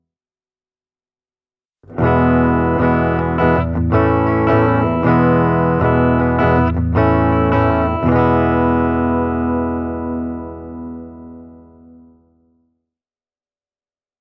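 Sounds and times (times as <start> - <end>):
Epiphone Ltd Ed Korina Explorer guitar clean: 1.8 - 12.5.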